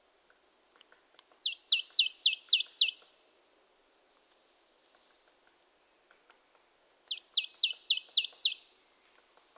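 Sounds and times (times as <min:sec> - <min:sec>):
Poecile palustris calling: 0:01.3 - 0:03.1, 0:07.0 - 0:08.8.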